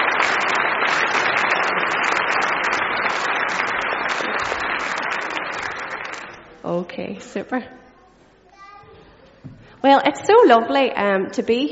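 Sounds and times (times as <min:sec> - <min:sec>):
crowd clapping: 0:00.0 - 0:06.6
speech: 0:06.7 - 0:07.8, 0:09.8 - 0:11.7.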